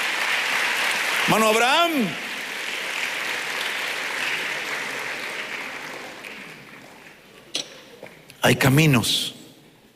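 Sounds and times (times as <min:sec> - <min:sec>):
audience applause: 0:00.0 - 0:07.4
speech: 0:01.3 - 0:02.3, 0:08.4 - 0:09.4.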